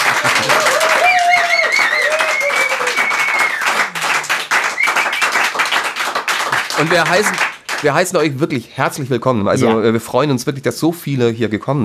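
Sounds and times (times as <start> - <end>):
loud audience applause: 0.0 - 8.1
speech: 6.8 - 11.8.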